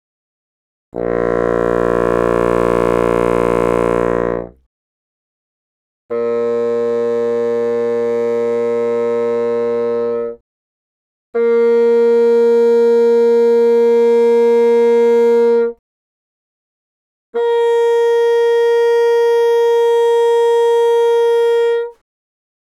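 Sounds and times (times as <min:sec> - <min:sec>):
bassoon: 0:01.0 - 0:04.6, 0:06.1 - 0:10.4, 0:11.4 - 0:15.8, 0:17.4 - 0:22.0.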